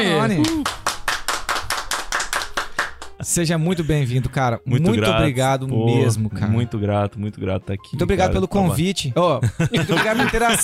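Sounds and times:
speech: 0:00.0 - 0:00.8, 0:03.2 - 0:10.6
applause: 0:00.3 - 0:03.2
laughter: 0:09.4 - 0:10.6.

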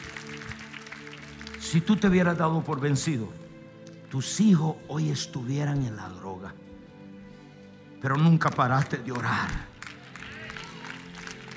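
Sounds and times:
audience applause: 0:00.0 - 0:02.9, 0:08.8 - 0:11.5
speech: 0:01.6 - 0:03.4, 0:04.1 - 0:06.6, 0:08.0 - 0:09.7.

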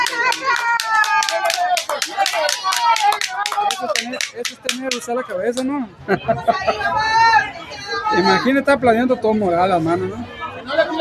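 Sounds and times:
spectators clapping at a youth baseball game: 0:00.0 - 0:05.7
people talking and calling out: 0:00.0 - 0:10.9
speech: 0:02.5 - 0:07.5, 0:08.1 - 0:10.4
laughter: 0:06.0 - 0:07.2.

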